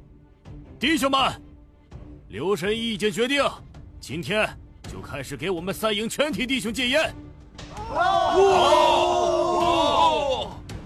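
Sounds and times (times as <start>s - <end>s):
speech: 0.8s - 1.4s, 2.3s - 7.2s, 7.9s - 9.2s
soldiers cheering: 7.7s - 10.6s.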